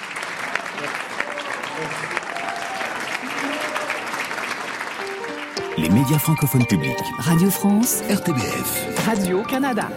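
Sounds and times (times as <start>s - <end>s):
audience applause: 0.0s - 6.7s
speech: 1.8s - 2.2s, 5.8s - 9.9s.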